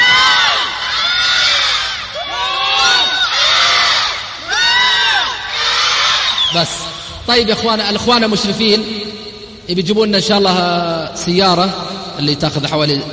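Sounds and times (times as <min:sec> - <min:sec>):
crowd of young people shouting together on cue: 0:00.0 - 0:06.6
speech: 0:06.5 - 0:13.1.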